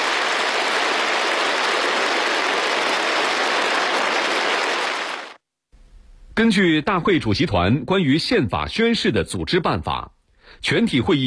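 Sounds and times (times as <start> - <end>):
warm applause in an assembly hall: 0.0 - 5.4
speech: 6.4 - 11.2.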